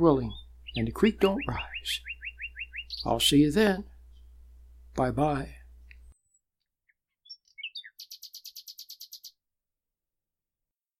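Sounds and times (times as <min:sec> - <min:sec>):
speech: 0:00.0 - 0:02.1, 0:03.0 - 0:03.9, 0:05.0 - 0:05.6
bird singing whistled notes and trilling: 0:00.0 - 0:03.5, 0:06.2 - 0:09.4.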